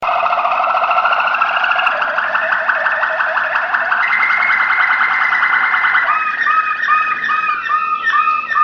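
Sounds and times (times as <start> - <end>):
Waterslager canary singing: 0.1 - 8.6.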